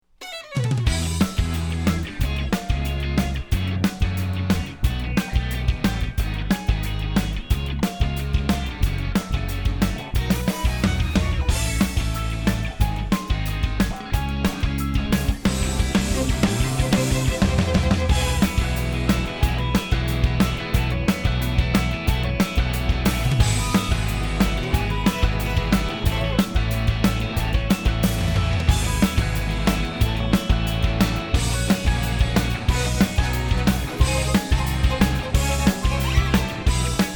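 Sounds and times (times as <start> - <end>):
pop theme song: 0.2 - 8.8, 9.8 - 37.1.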